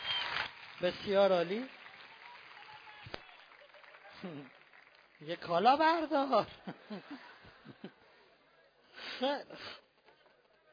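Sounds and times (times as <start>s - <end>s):
room full of people applauding: 0.0s - 6.9s
speech: 0.8s - 1.8s, 4.2s - 4.6s, 5.2s - 7.3s, 9.2s - 9.8s
laughter: 6.2s - 8.3s.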